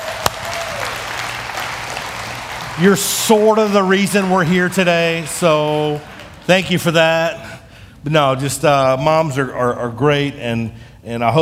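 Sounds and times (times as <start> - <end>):
audience applause honouring the mothers in the room: 0.0 - 7.4
speech: 2.8 - 11.4.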